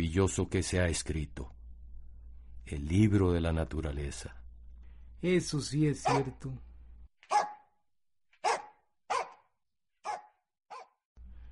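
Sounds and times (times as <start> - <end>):
speech: 0.1 - 1.5, 2.7 - 4.4, 5.2 - 6.7
hunting dog baying on the trail: 6.0 - 6.4, 7.3 - 7.6, 8.4 - 9.4, 10.0 - 11.0.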